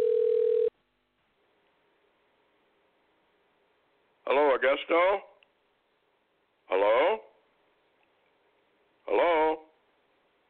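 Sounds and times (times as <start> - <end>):
telephone line tone while calling: 0.0 - 0.7
speech: 4.6 - 5.3, 6.7 - 7.2.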